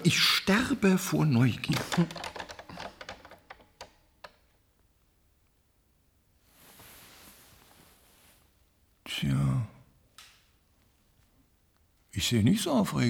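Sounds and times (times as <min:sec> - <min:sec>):
speech: 0:00.0 - 0:02.4, 0:09.1 - 0:09.8, 0:12.2 - 0:13.0
soft steady hiss: 0:00.0 - 0:13.0
typing on a computer keyboard: 0:01.6 - 0:04.4.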